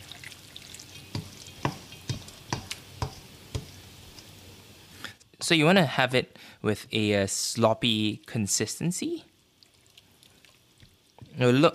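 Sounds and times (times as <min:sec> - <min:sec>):
spoon or whisk mixing lo bak gou turnip cake batter in a bowl: 0:01.1 - 0:03.7
speech: 0:05.4 - 0:09.3, 0:11.4 - 0:11.7.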